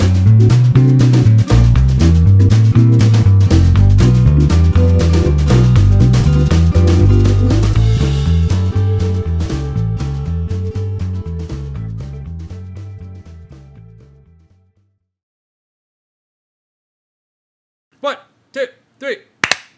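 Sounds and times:
bright music: 0:00.1 - 0:12.3
group hand clap: 0:19.4 - 0:19.7.

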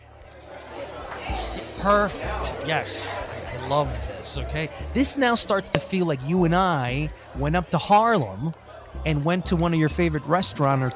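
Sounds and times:
bar crowd noise sound effect: 0:00.0 - 0:10.9
speech: 0:01.8 - 0:10.9.

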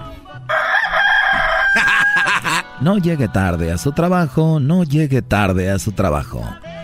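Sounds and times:
rooster crowing alarm clock: 0:00.5 - 0:01.9
laughter: 0:01.6 - 0:02.8
speech: 0:02.8 - 0:06.7.

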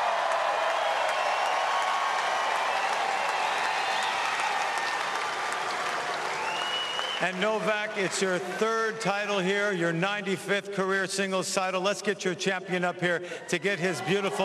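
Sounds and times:
tennis audience applause at the Cincinnati trophy ceremony for Carlos Alcaraz: 0:00.0 - 0:08.9
speech: 0:07.2 - 0:14.4.

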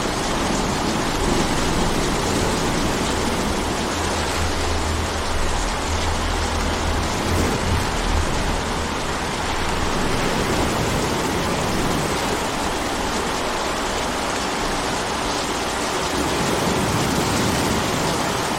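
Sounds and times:
rainstorm pouring: 0:00.0 - 0:18.5
low droning hum: 0:00.1 - 0:10.9.

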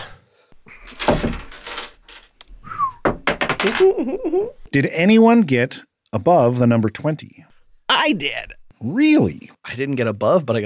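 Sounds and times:
dice rolled for initiative clattering on a hard surface: 0:00.9 - 0:02.4, 0:03.1 - 0:03.9
speech: 0:03.6 - 0:10.6.

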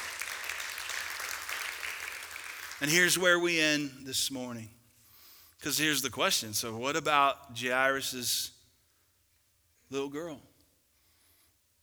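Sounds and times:
audience applause: 0:00.0 - 0:03.3
speech: 0:02.8 - 0:04.8, 0:05.6 - 0:08.6, 0:09.9 - 0:10.5.

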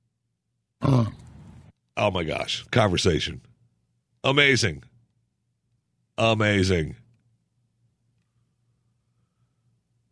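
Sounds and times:
orangutan deep grunting voice: 0:00.8 - 0:01.3
speech: 0:02.0 - 0:03.5, 0:04.2 - 0:04.9, 0:06.2 - 0:07.0.

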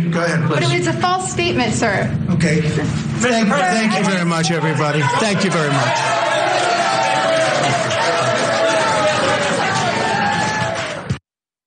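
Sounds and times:
speech: 0:00.1 - 0:06.3
overlapping voices: 0:04.5 - 0:11.2
cheering and whoops: 0:05.0 - 0:11.2
supporters clapping at press briefing: 0:05.0 - 0:11.2.

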